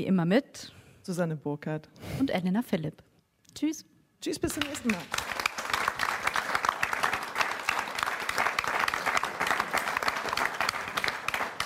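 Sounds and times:
speech: 0:00.0 - 0:05.2
audience applause: 0:04.5 - 0:11.6.

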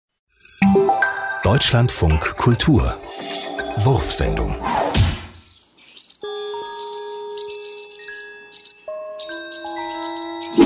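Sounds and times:
speech: 0:01.4 - 0:04.8
swallows chirping in flight: 0:05.3 - 0:10.6.

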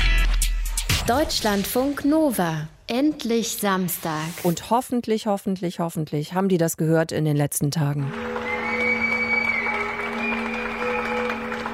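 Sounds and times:
speech: 0:01.1 - 0:08.4
crowd clapping: 0:08.1 - 0:11.7
faint cheering: 0:08.2 - 0:11.7
sustained whistle: 0:08.2 - 0:11.7.

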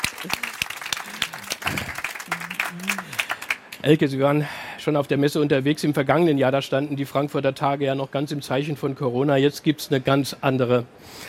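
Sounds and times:
audience clapping: 0:00.0 - 0:03.8
speech: 0:03.8 - 0:11.2.

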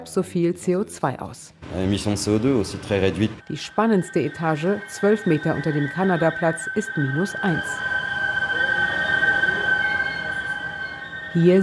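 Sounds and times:
speech: 0:00.0 - 0:07.9, 0:11.4 - 0:11.6
Seine river water whistling through cooling system filters: 0:03.6 - 0:11.6.

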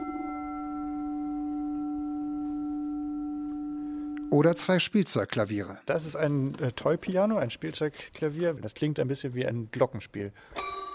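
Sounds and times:
singing bowl ringing: 0:00.0 - 0:04.4, 0:10.6 - 0:10.9
speech: 0:04.3 - 0:10.7.

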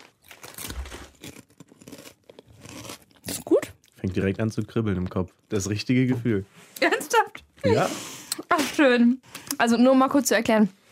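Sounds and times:
potato chip being eaten: 0:00.0 - 0:04.2
speech: 0:04.0 - 0:07.0, 0:07.6 - 0:08.1, 0:08.8 - 0:10.8.

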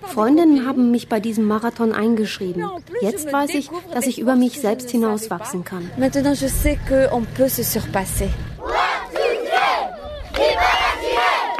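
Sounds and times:
speech: 0:00.1 - 0:08.5
children cheering at roadside for marathon runners: 0:08.6 - 0:11.5.

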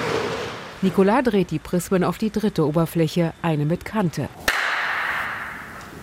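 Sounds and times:
speech: 0:00.8 - 0:04.5
sharp impulse with long hall reverberation: 0:04.4 - 0:05.9.

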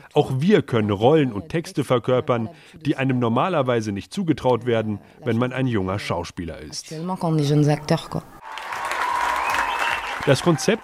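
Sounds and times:
speech: 0:00.2 - 0:08.4, 0:10.3 - 0:10.8
theatre audience applause and standing ovation after a performance: 0:08.4 - 0:10.8.

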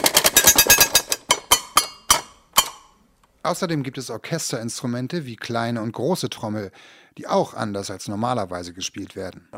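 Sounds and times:
metal plate struck rapidly by beater: 0:00.1 - 0:03.0
speech: 0:03.5 - 0:09.5.

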